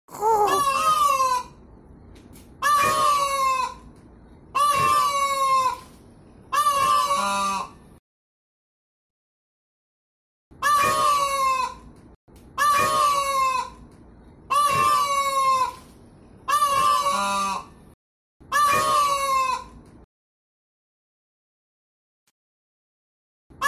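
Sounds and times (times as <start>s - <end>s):
peafowl braying calls: 0.2s - 1.6s, 2.6s - 3.9s, 4.5s - 7.8s, 10.6s - 11.8s, 12.6s - 13.8s, 14.5s - 15.9s, 16.5s - 17.7s, 18.5s - 19.8s.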